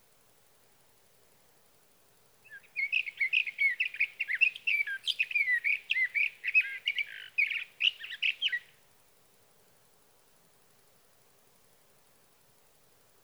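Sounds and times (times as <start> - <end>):
sage thrasher singing a rapid warble: 2.4 - 8.8.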